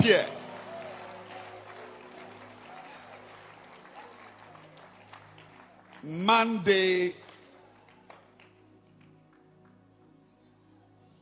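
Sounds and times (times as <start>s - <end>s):
speech: 0.0s - 0.4s, 6.0s - 7.2s
audience clapping hands: 0.0s - 9.8s.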